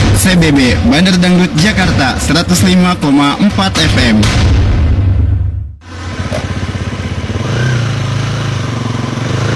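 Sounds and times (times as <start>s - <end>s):
speech: 0.2s - 4.6s
motorcycle engine idling beside a sidewalk where it is parked: 5.8s - 9.4s.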